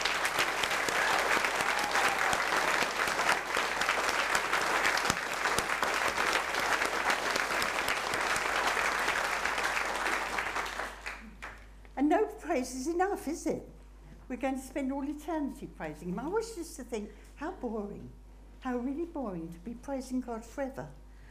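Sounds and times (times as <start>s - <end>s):
audience clapping: 0.0s - 11.7s
speech: 12.6s - 21.0s.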